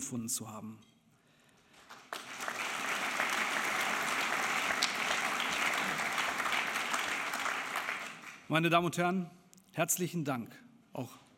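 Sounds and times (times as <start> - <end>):
speech: 0.1 - 1.0, 8.5 - 11.2
audience applause: 1.9 - 8.5.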